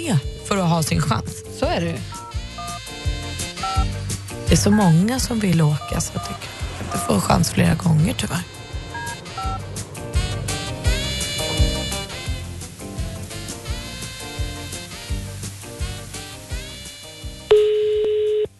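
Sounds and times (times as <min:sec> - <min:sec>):
speech: 0:00.0 - 0:02.2, 0:03.7 - 0:08.6
busy instrumental music: 0:00.0 - 0:17.7
telephone dialing tone: 0:03.6 - 0:03.9, 0:05.8 - 0:07.1, 0:17.5 - 0:18.5.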